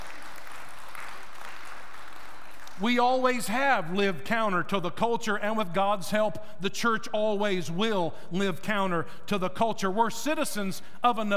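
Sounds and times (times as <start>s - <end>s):
church congregation applauding: 0.0s - 3.4s
speech: 2.8s - 11.3s.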